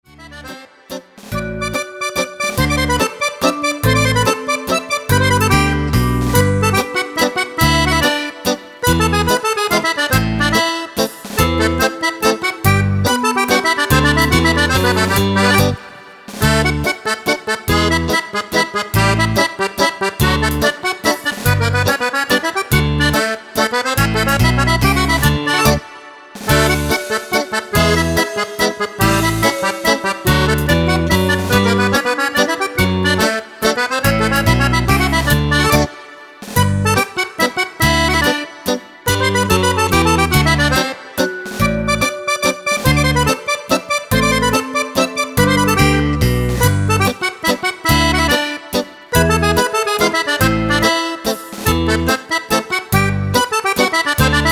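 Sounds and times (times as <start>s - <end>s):
mazurka: 0.1s - 54.5s.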